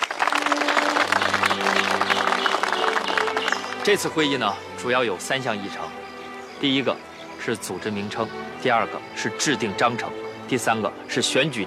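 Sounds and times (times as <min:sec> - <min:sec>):
meeting audience applause: 0:00.0 - 0:05.7
speech: 0:03.9 - 0:06.0, 0:06.6 - 0:11.6.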